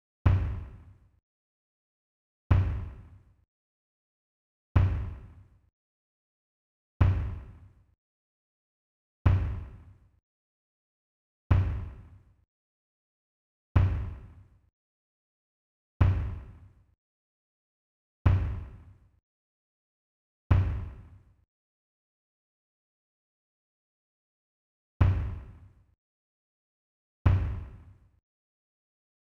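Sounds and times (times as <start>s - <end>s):
kick drum: 0.3s - 0.8s, 2.5s - 3.1s, 4.8s - 5.4s, 7.0s - 7.6s, 9.3s - 9.9s, 11.5s - 12.1s, 13.8s - 14.4s, 16.0s - 16.6s, 18.3s - 18.8s, 20.5s - 21.1s, 25.0s - 25.6s, 27.3s - 27.9s.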